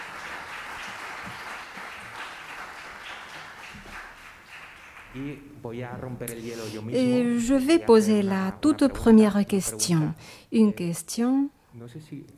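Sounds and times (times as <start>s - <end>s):
audience applause: 0.0s - 5.4s
speech: 5.2s - 12.3s.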